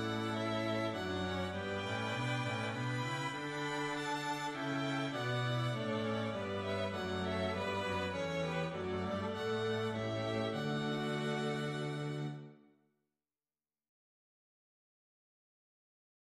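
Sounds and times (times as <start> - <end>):
strings playing a hymn: 0.0 - 12.6.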